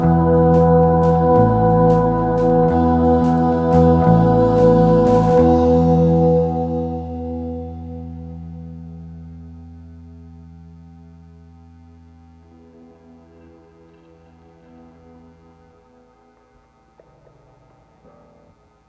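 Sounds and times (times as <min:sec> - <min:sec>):
full band playing in monitor mix: 0:00.0 - 0:07.2.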